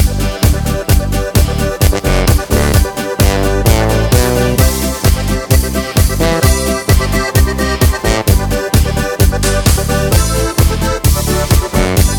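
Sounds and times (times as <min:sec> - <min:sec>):
music in G without choir: 0:00.0 - 0:12.1.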